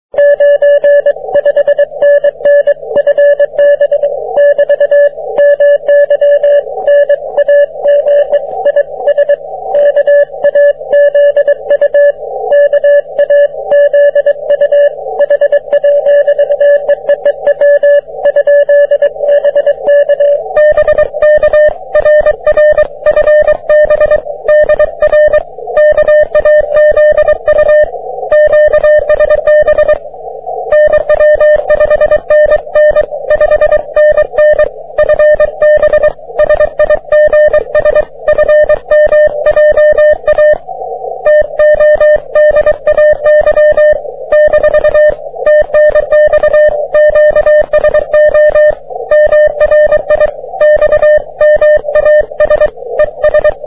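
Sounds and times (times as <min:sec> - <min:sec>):
30m band continuous wave morse code tones: 0:00.2 - 0:30.0, 0:30.6 - 0:53.6.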